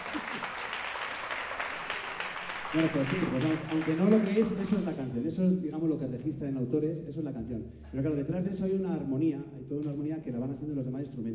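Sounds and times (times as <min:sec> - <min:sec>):
audience applause: 0:00.0 - 0:04.9
speech: 0:02.7 - 0:11.3.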